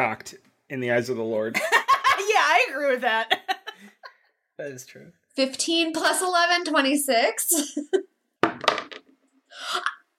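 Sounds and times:
speech: 0:00.0 - 0:03.4, 0:04.6 - 0:08.1
dice rolling into a dice case: 0:08.4 - 0:09.2.

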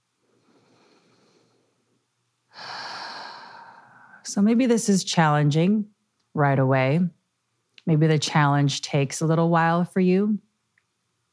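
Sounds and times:
breathing while holding a plank pose: 0:00.3 - 0:01.8, 0:02.5 - 0:04.2
speech: 0:04.3 - 0:07.2, 0:07.8 - 0:10.5.

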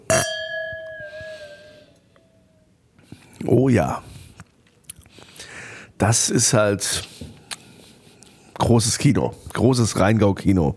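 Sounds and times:
wine glasses clinking in a toast: 0:00.0 - 0:02.0
speech: 0:03.4 - 0:04.1, 0:06.0 - 0:07.2, 0:08.6 - 0:10.7.

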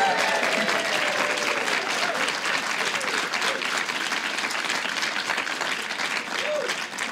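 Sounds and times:
cheers and whoops: 0:00.0 - 0:03.7, 0:06.4 - 0:06.8
live audience applause: 0:00.0 - 0:07.1.

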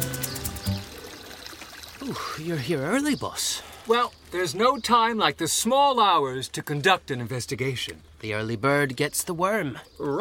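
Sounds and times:
water splashing from a public fountain: 0:00.0 - 0:02.7
speech: 0:02.1 - 0:10.2.

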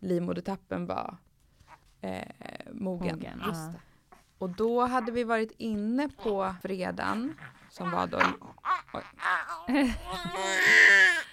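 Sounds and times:
speech: 0:00.0 - 0:01.3, 0:02.0 - 0:11.3
newborn baby crying: 0:06.2 - 0:11.3.

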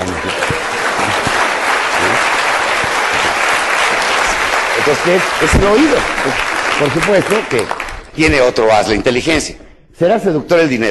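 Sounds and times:
audience applause: 0:00.0 - 0:08.6
speech: 0:04.9 - 0:10.9.

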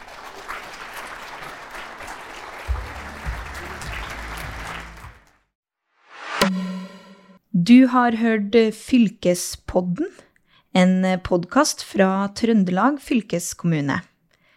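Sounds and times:
applause: 0:00.0 - 0:05.5
musical jingle with a bright struck note: 0:02.7 - 0:05.3, 0:06.4 - 0:07.4
speech: 0:07.7 - 0:14.1.

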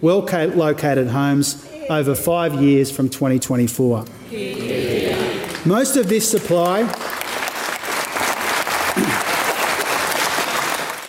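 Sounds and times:
speech: 0:00.0 - 0:04.7, 0:05.6 - 0:07.1
room of people applauding during a budget speech: 0:04.5 - 0:11.0.

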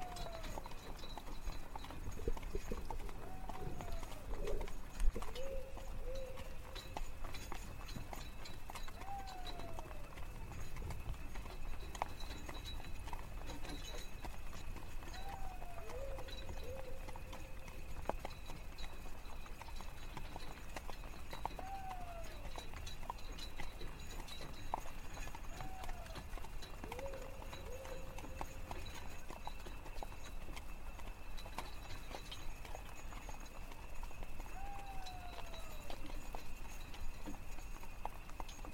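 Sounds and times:
horse hooves clopping on a carriage ride through night woods: 0:00.0 - 0:38.7
constant high chirring of crickets: 0:00.1 - 0:19.4, 0:25.9 - 0:38.7
falling owl-like call: 0:03.2 - 0:04.6, 0:09.0 - 0:10.0, 0:15.2 - 0:17.0, 0:21.6 - 0:22.4, 0:25.6 - 0:26.2, 0:26.9 - 0:28.2, 0:34.5 - 0:35.7.

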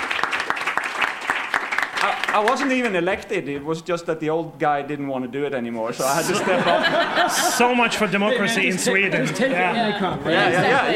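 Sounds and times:
audience golf clap: 0:00.0 - 0:03.0
speech: 0:02.0 - 0:10.9
laughter: 0:06.0 - 0:10.9.

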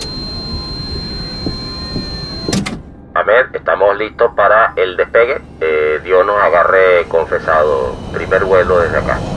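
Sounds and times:
electronic chime: 0:00.0 - 0:02.6
doors sliding shut: 0:00.0 - 0:02.9
mechanical hum and whine: 0:00.0 - 0:09.3
speech: 0:03.3 - 0:09.3.

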